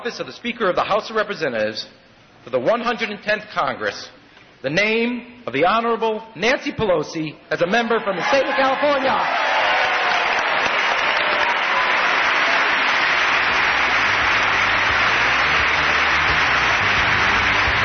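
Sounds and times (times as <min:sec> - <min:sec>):
speech: 0:00.0 - 0:09.6
crowd applause: 0:08.2 - 0:17.8.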